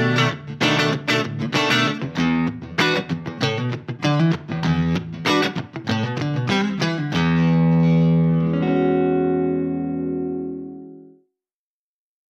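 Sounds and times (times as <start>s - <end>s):
funk blues backing track: 0.0s - 9.6s.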